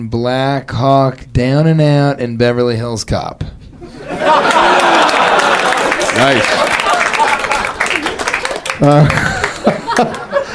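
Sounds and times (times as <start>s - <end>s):
speech: 0.0s - 3.6s, 4.2s - 5.1s, 6.2s - 6.8s, 8.8s - 10.2s
people chuckling: 3.8s - 10.5s
audience applause: 4.2s - 10.4s.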